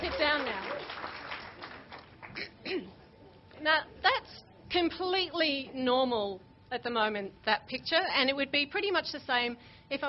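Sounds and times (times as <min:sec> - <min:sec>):
audience applause: 0:00.0 - 0:02.4
speech: 0:03.6 - 0:10.0.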